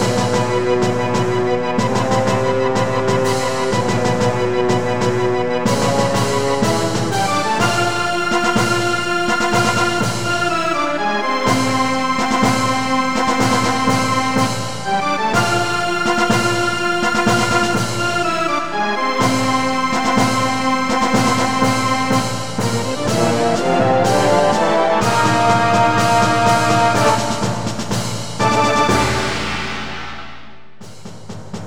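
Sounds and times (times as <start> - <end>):
unused game music: 0.1 - 29.8.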